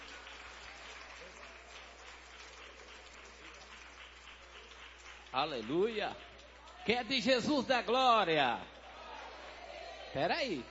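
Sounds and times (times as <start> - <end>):
audience applause: 0.0 - 7.5
speech: 5.3 - 6.3, 6.9 - 8.7, 10.1 - 10.6.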